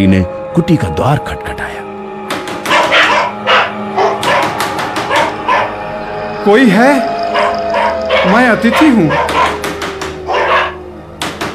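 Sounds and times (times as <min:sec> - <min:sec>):
speech: 0:00.0 - 0:01.8, 0:06.4 - 0:07.1, 0:08.2 - 0:09.3
two dogs barking: 0:02.5 - 0:06.0, 0:07.1 - 0:11.5.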